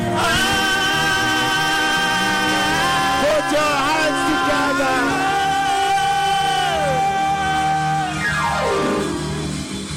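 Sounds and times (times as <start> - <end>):
audience cheering: 0.1 - 9.9
people clapping: 0.9 - 8.5.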